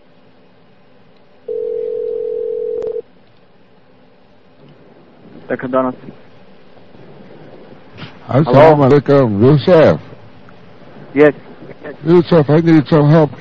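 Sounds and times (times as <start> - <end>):
telephone dial tone: 1.5 - 3.0
speech: 5.5 - 6.3, 8.3 - 10.1, 11.1 - 13.3.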